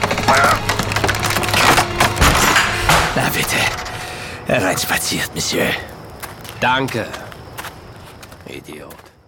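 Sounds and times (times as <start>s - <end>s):
wooden door being smashed open: 0.0s - 3.5s
speech: 4.5s - 6.0s, 6.6s - 7.2s, 8.5s - 9.0s.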